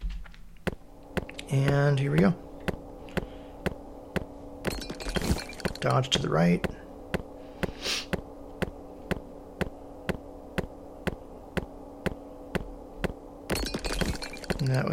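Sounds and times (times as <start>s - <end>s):
low steady hum: 0.0s - 14.9s
video game skeleton sound effect clicks: 0.6s - 6.8s, 13.0s - 14.9s
speech: 1.5s - 2.5s, 5.8s - 6.8s.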